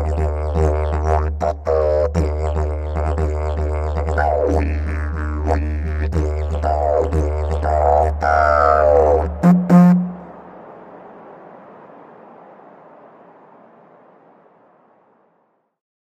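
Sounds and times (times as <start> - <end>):
didgeridoo played in Australia: 0.0 - 10.3.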